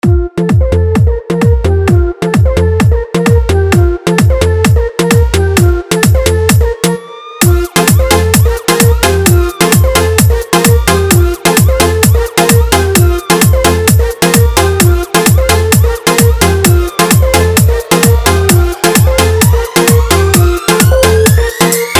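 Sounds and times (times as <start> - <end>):
Hindi DJ song: 0.0 - 21.9.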